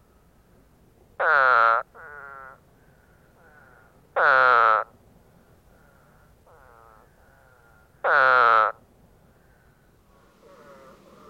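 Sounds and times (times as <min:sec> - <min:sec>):
Spadefoot bleating calls: 0:01.2 - 0:02.7, 0:03.4 - 0:04.9, 0:05.7 - 0:08.8, 0:09.4 - 0:11.2.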